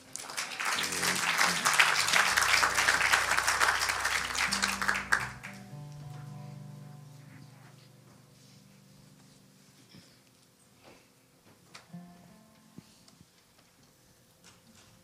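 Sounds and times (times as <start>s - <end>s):
audience clapping: 0.0s - 5.8s
sustained low keyboard chords: 0.8s - 13.0s.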